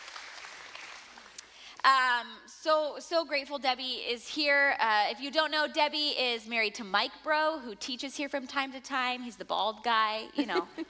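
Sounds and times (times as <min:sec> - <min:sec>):
faint audience applause for a guest at a church: 0:00.0 - 0:01.6
speech: 0:01.8 - 0:10.8.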